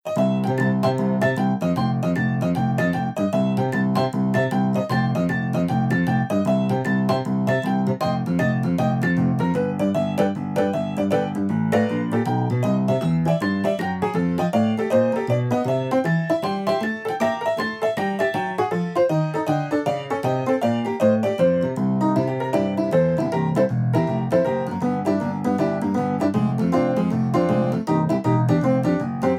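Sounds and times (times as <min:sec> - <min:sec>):
detuned boogie woogie music: 0:00.0 - 0:29.3.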